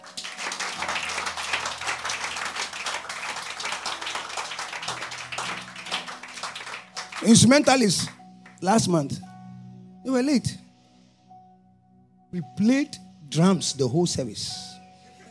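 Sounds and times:
audience clapping: 0.0s - 8.8s
speech: 7.2s - 9.3s, 10.0s - 10.6s, 12.3s - 14.7s.

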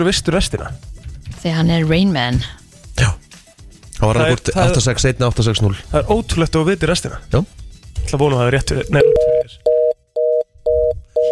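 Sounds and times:
speech: 0.0s - 3.1s, 4.0s - 9.7s
telephone busy tone after hang-up: 9.0s - 11.3s.

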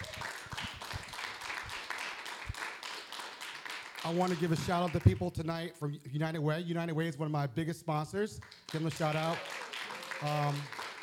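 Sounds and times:
audience round of applause: 0.0s - 5.1s, 8.5s - 11.0s
speech: 4.0s - 9.6s, 10.2s - 10.8s.

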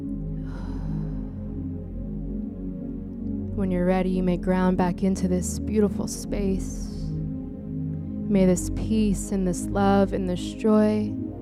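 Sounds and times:
quiet sustained musical drone: 0.0s - 11.4s
person letting out a long deep breath during a guided meditation: 0.4s - 1.8s
speech: 3.6s - 6.9s, 8.3s - 11.2s.

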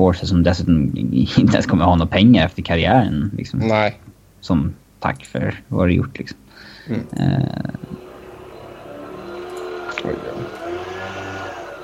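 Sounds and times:
speech: 0.0s - 7.8s, 10.0s - 10.4s
leaf blowers running outside: 6.9s - 11.8s.

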